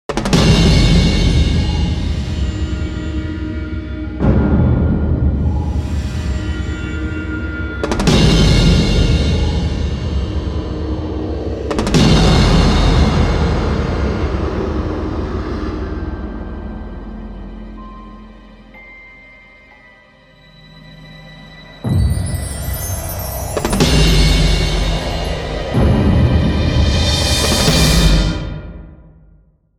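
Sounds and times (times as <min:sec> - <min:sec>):
trailer music: 0:00.1 - 0:29.5.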